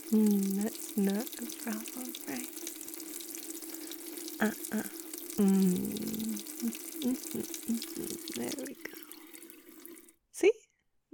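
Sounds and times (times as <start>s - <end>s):
water splashing and trickling as a face is washed: 0.0s - 10.2s
speech: 0.1s - 2.6s, 4.4s - 7.8s.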